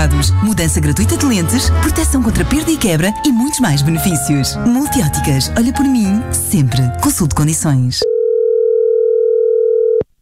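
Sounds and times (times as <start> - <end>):
speech: 0.0 - 8.0
telephone call tone on dialing a mobile phone: 8.0 - 10.1.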